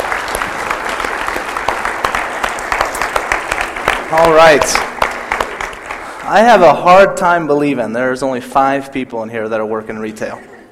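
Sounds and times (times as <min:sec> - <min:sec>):
crowd clapping: 0:00.0 - 0:07.1
speech: 0:04.1 - 0:04.9, 0:06.3 - 0:10.5.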